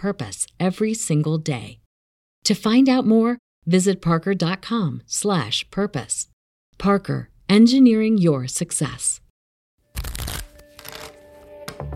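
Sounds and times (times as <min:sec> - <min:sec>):
speech: 0:00.0 - 0:01.8, 0:02.4 - 0:09.2
deck of playing cards printed with unsolved cases being shuffled: 0:09.9 - 0:11.8.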